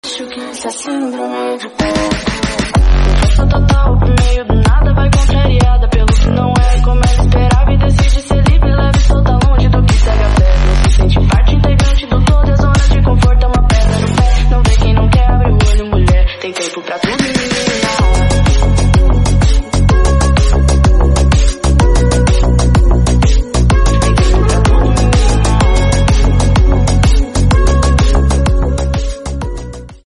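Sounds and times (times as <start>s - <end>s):
groove music: 1.6s - 30.0s.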